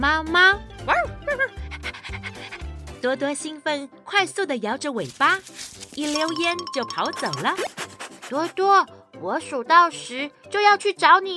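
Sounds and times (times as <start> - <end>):
speech: 0.0 - 1.5, 3.0 - 11.3
small dog panting: 1.5 - 3.0, 7.2 - 8.7.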